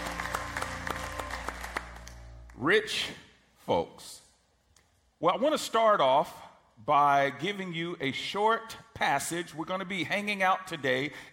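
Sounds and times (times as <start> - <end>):
crowd clapping in applause in a reverberant room: 0.0 - 2.6
speech: 2.6 - 4.2, 5.2 - 11.3.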